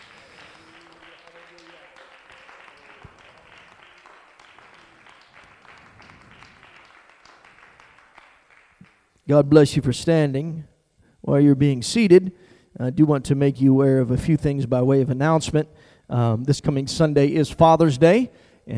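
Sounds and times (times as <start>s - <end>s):
large audience applauding: 0.0s - 9.2s
speech: 9.3s - 18.7s.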